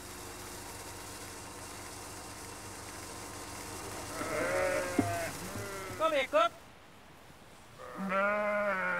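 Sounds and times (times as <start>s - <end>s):
sheep bleating: 4.1s - 6.2s, 7.8s - 8.9s.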